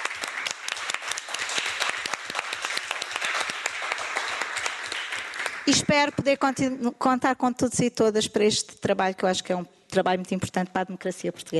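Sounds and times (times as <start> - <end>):
round of applause from a crowd: 0.0 - 6.1
speech: 5.7 - 11.5.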